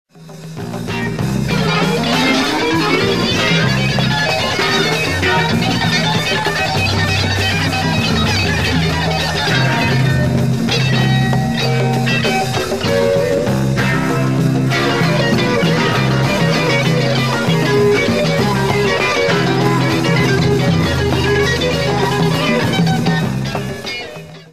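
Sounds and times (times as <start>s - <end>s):
funk music: 0.2s - 24.5s.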